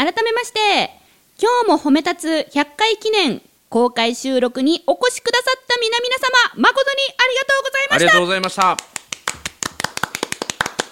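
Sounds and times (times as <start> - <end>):
speech: 0.0 - 9.0
two people clapping hands: 8.2 - 10.8.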